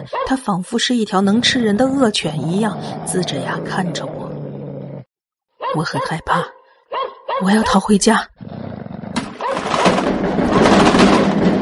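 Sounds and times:
speech: 0.0s - 4.2s, 5.7s - 6.6s, 7.4s - 8.4s
violent banging from behind a door: 9.2s - 11.6s.

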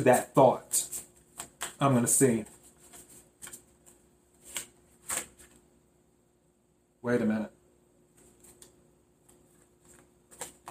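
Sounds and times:
speech: 0.0s - 1.0s, 1.8s - 2.5s, 7.0s - 7.6s
playing cards shuffled for a card reading: 0.0s - 5.6s, 9.3s - 10.6s.

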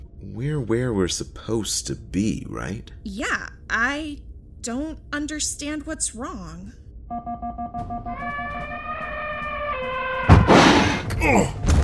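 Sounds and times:
speech: 0.4s - 9.1s, 11.2s - 11.8s
vehicle thudding into an elephant: 10.2s - 11.8s.

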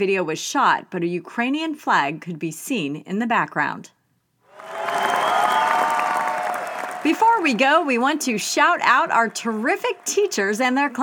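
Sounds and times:
speech: 0.0s - 4.0s, 7.0s - 11.0s
applause: 4.5s - 11.0s.

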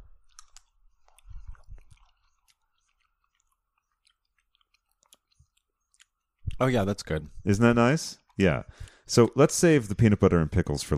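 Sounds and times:
crunchy chewing of green fennel: 0.0s - 7.2s
speech: 6.6s - 10.9s.

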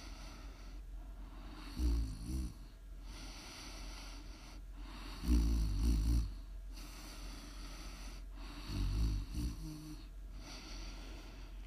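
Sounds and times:
soft airy breathing: 0.0s - 1.9s, 2.6s - 5.5s, 6.3s - 9.3s, 10.0s - 11.6s
deep rumbling snoring: 1.5s - 3.7s, 4.9s - 10.6s.

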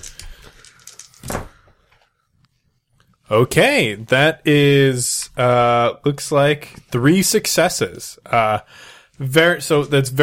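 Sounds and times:
dice being rolled: 0.0s - 1.3s
speech: 3.3s - 10.2s.

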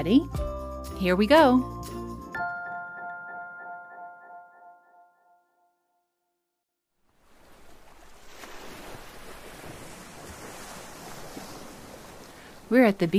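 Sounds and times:
speech: 0.0s - 2.0s, 12.7s - 13.1s
ocean waves breaking on beach: 7.0s - 13.1s.

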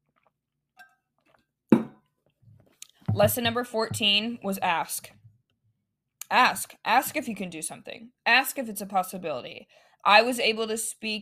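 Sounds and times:
glass clinking: 0.8s - 1.1s, 1.7s - 2.0s
glass knocking as it is handled: 1.7s - 2.0s
speech: 3.2s - 5.2s, 6.3s - 11.2s.

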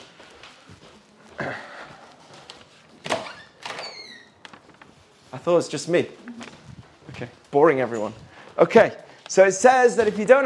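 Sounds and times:
door opening: 3.0s - 4.7s
speech: 5.4s - 6.4s, 7.2s - 10.4s.

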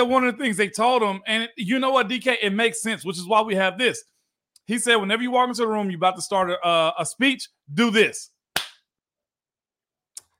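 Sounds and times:
speech: 0.0s - 4.1s, 4.7s - 8.3s
sharp hand claps: 8.6s - 8.8s.

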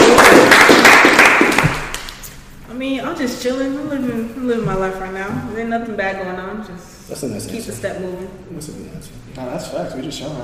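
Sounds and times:
clapping: 0.0s - 2.3s
speech: 3.2s - 10.4s.

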